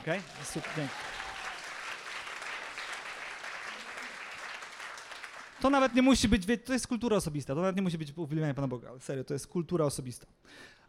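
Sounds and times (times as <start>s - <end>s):
speech: 0.0s - 1.2s, 5.6s - 10.8s
audience clapping: 0.0s - 6.0s.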